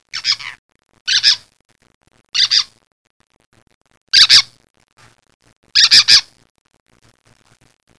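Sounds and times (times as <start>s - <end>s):
birds chirping: 0.1s - 1.5s, 2.4s - 2.7s, 4.2s - 4.5s, 5.8s - 6.2s.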